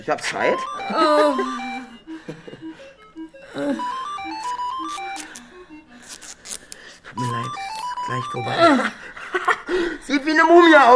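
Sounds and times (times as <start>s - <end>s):
speech: 0.0s - 1.7s, 3.6s - 4.0s, 7.2s - 9.0s, 9.7s - 10.9s
telephone ringing with a melodic electronic tune: 0.2s - 6.2s, 7.2s - 9.0s, 10.2s - 10.9s.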